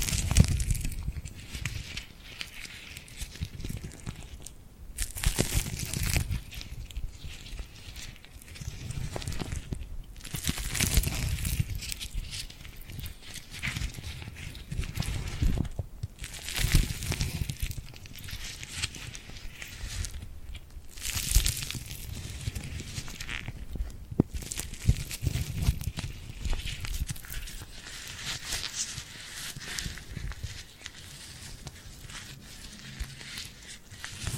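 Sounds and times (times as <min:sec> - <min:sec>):
glued hand sounds: 0:00.0 - 0:34.3.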